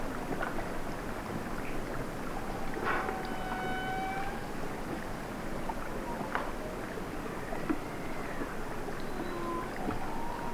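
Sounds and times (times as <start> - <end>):
hissing rumbling wash of water noise: 0.0 - 10.5
whales wailing underwater on hydrophone: 2.2 - 5.0, 5.9 - 10.5.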